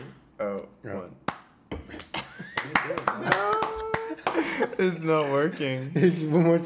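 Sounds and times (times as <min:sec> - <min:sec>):
speech: 0:00.8 - 0:01.3, 0:04.6 - 0:06.6
group clapping hands, trying to synchronize: 0:01.3 - 0:05.3.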